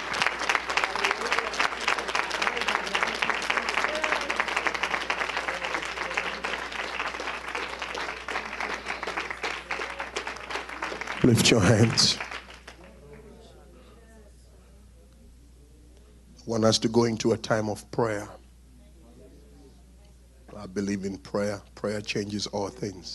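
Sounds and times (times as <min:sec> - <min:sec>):
audience clapping hands: 0:00.0 - 0:13.3
speech: 0:11.3 - 0:12.3, 0:16.6 - 0:18.4, 0:20.8 - 0:23.1.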